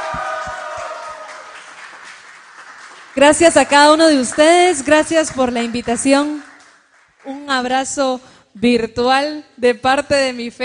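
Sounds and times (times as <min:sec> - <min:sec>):
crowd applause: 0:00.0 - 0:07.3
speech: 0:03.2 - 0:06.5, 0:07.2 - 0:10.6.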